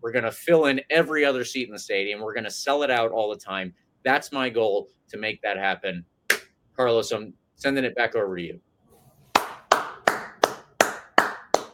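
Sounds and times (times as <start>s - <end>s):
speech: 0.0s - 6.1s, 6.8s - 8.7s
audience applause: 9.4s - 11.7s.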